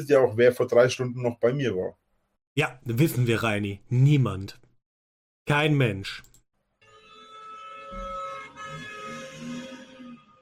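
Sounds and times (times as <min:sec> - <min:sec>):
speech: 0:00.0 - 0:02.0, 0:02.6 - 0:04.6, 0:05.5 - 0:06.3
faint car horn honking: 0:07.0 - 0:10.4.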